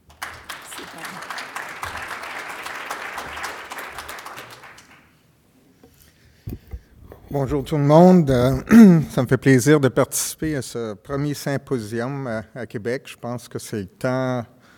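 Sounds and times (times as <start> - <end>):
audience applause: 0.0 - 5.2
faint thumps: 6.4 - 9.2
speech: 7.3 - 14.6.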